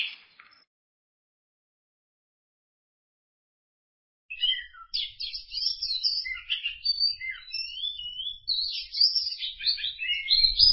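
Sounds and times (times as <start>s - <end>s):
greater green leafbird singing: 0.0s - 0.7s, 4.3s - 10.7s.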